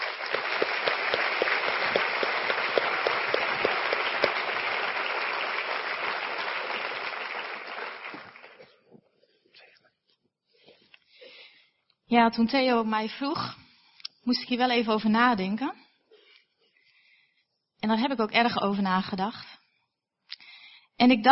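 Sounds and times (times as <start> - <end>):
warm audience applause: 0.0 - 8.8
speech: 12.1 - 13.6, 14.3 - 15.8, 17.9 - 19.5, 21.0 - 21.3.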